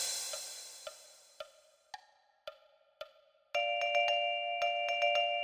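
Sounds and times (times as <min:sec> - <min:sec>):
vibraphone: 0:03.6 - 0:05.4.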